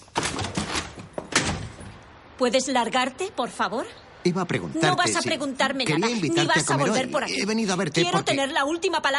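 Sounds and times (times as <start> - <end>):
door being opened: 0.0 - 2.1
speech: 2.4 - 9.1.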